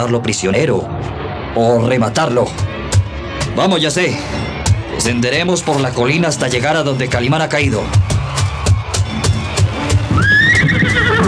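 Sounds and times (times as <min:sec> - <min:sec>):
speech: 0:00.0 - 0:02.7, 0:03.6 - 0:08.2
hooves clip-clopping: 0:08.0 - 0:11.2
horse whinnying: 0:10.1 - 0:11.2.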